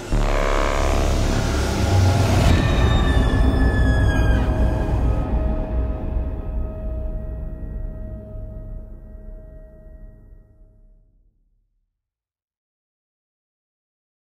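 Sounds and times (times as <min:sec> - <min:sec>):
epic atmospheric hybrid horror trailer music: 0:00.0 - 0:10.5.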